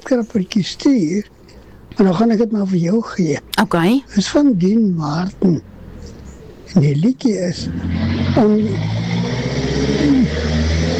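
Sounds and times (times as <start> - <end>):
speech: 0.1 - 1.4, 2.0 - 5.7, 6.7 - 9.0
car revving on a street: 7.6 - 10.9.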